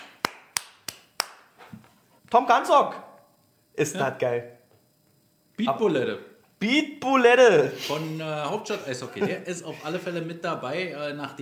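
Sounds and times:
person clapping: 0:00.0 - 0:01.6
speech: 0:02.3 - 0:03.1, 0:03.8 - 0:04.6, 0:05.6 - 0:11.4
laughter: 0:08.7 - 0:10.3.

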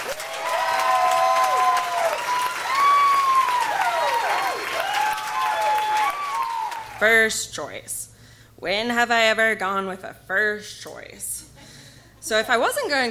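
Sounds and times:
audience clapping: 0:00.0 - 0:07.0
high whoops and whistle-like cheers: 0:00.0 - 0:07.0
speech: 0:07.0 - 0:11.4, 0:12.2 - 0:13.0.

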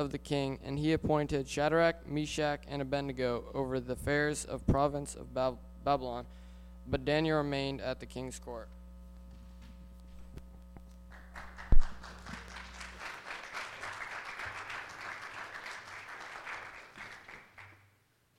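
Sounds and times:
speech: 0:00.0 - 0:08.8
audience clapping: 0:11.1 - 0:17.9.

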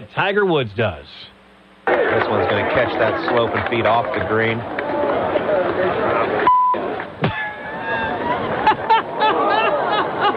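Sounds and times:
speech: 0:00.0 - 0:01.3, 0:01.9 - 0:04.8
golf gallery murmuring and chattering: 0:01.8 - 0:10.3
laughter: 0:01.9 - 0:04.2, 0:07.2 - 0:10.3
brief electronic beep: 0:06.5 - 0:06.8.

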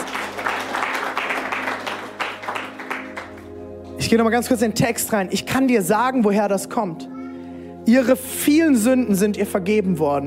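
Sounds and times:
audience applause: 0:00.0 - 0:03.5
speech: 0:04.0 - 0:07.1, 0:07.9 - 0:10.2.

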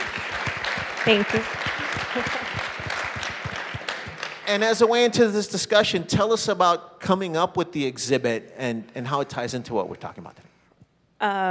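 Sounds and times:
audience applause: 0:00.0 - 0:05.1
speech: 0:01.0 - 0:02.5, 0:04.5 - 0:10.4, 0:11.2 - 0:11.4.

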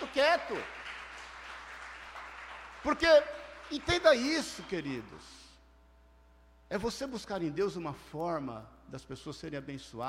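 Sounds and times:
audience applause: 0:00.0 - 0:04.3
speech: 0:00.2 - 0:00.8, 0:02.8 - 0:05.4, 0:06.7 - 0:10.0.

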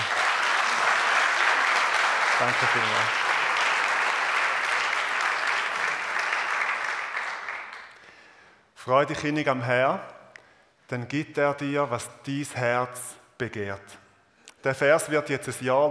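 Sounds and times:
audience applause for the artist: 0:00.0 - 0:08.0
speech: 0:02.4 - 0:03.2, 0:08.8 - 0:10.2, 0:10.9 - 0:14.0, 0:14.6 - 0:15.8.

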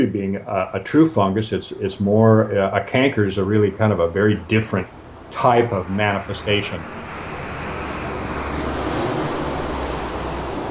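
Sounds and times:
speech: 0:00.0 - 0:07.0
airplanes flying overhead: 0:03.4 - 0:10.6.

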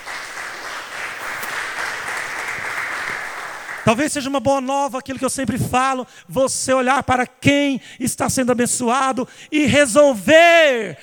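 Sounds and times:
audience applauding: 0:00.0 - 0:04.0
speech: 0:03.9 - 0:11.0.

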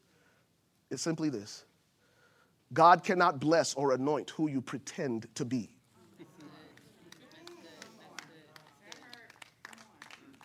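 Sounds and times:
speech: 0:00.9 - 0:01.7, 0:02.7 - 0:05.8
polite golf clap from audience: 0:06.4 - 0:10.4.

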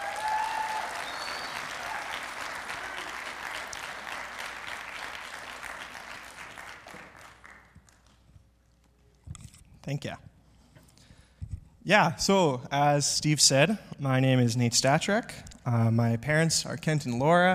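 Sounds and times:
church congregation applauding a guest speaker: 0:00.0 - 0:08.3
speech: 0:09.8 - 0:10.3, 0:11.9 - 0:17.5.

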